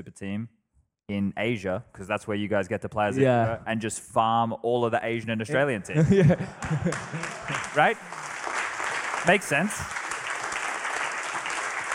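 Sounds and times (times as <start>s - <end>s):
speech: 0.0s - 8.2s, 9.2s - 10.0s
laughter: 5.6s - 8.4s
audience clapping: 6.5s - 11.9s.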